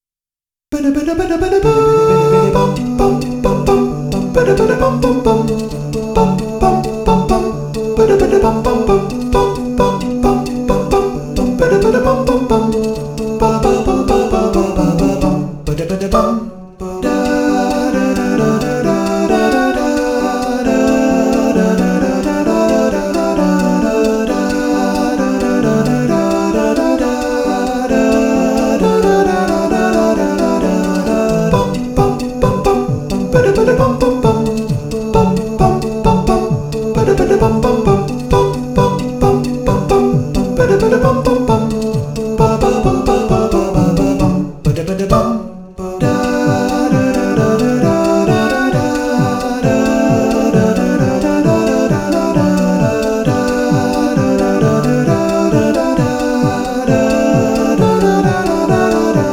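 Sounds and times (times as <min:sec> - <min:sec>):
a cappella singing: 0:00.8 - 0:59.3.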